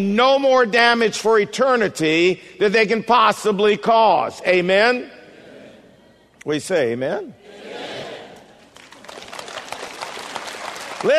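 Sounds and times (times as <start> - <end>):
speech: 0.0 - 5.2, 6.4 - 7.7
audience clapping: 8.4 - 11.1.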